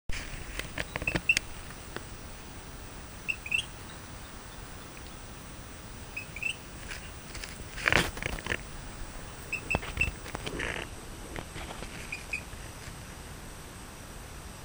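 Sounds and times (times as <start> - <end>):
Rio Grande chirping frog chirping: 0.1 - 10.8.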